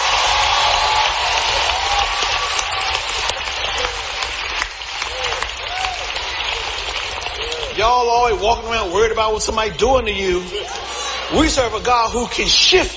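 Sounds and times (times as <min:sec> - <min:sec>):
audience clapping: 0:00.0 - 0:08.7
speech: 0:08.4 - 0:12.9.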